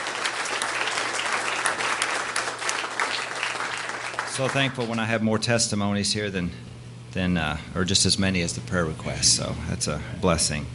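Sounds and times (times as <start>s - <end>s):
crowd clapping hands in praise: 0.0s - 5.1s
speech: 4.4s - 10.7s.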